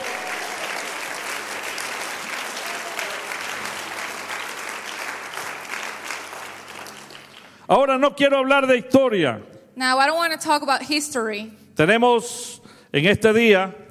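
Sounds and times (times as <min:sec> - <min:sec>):
audience applauding: 0:00.0 - 0:07.7
speech: 0:07.7 - 0:13.8.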